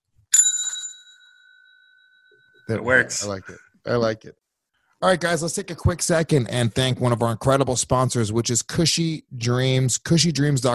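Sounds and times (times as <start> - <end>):
small hand bell rung as a game show ding: 0.3 - 2.7
speech: 2.7 - 4.4, 5.0 - 10.7.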